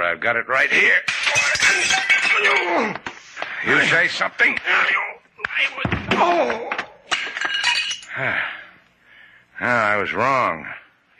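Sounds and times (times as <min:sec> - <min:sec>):
speech: 0:00.0 - 0:06.8, 0:08.2 - 0:08.6, 0:09.6 - 0:11.1
glassy debris clinking: 0:01.1 - 0:02.8, 0:07.1 - 0:08.2
doll striking a man over the head: 0:01.1 - 0:02.9.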